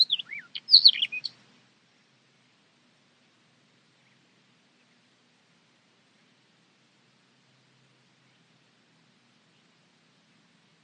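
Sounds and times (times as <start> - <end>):
bird calls: 0.0 - 1.4.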